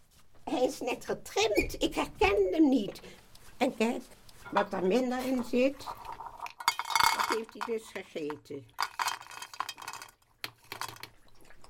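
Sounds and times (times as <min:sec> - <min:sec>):
speech: 0:00.6 - 0:06.0, 0:07.3 - 0:08.8
dog drinking water from bowl: 0:10.3 - 0:11.6.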